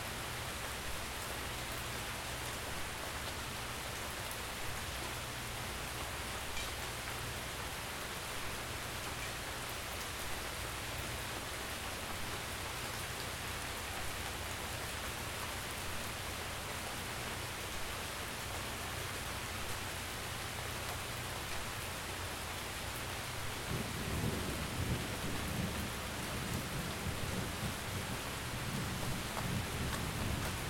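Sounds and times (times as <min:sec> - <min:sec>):
rain: 0:00.0 - 0:30.6
thunderstorm: 0:23.6 - 0:30.6.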